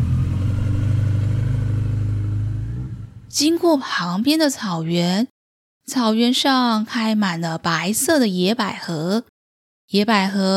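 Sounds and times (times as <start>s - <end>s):
motorcycle riding slowly: 0.0s - 3.3s
speech: 3.4s - 9.3s, 9.9s - 10.5s.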